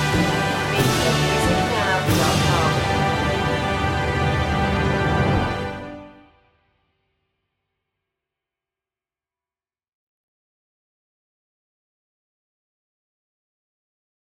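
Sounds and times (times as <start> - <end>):
very slow national anthem without choir: 0.0 - 6.3.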